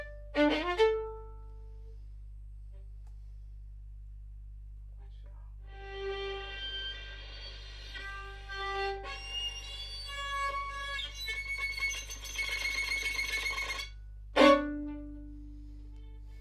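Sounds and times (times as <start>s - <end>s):
violin: 0.0s - 2.0s, 5.7s - 16.3s.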